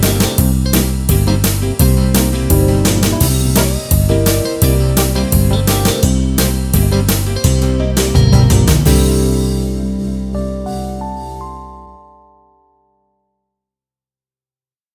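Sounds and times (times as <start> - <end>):
country rock music: 0.0 - 11.2.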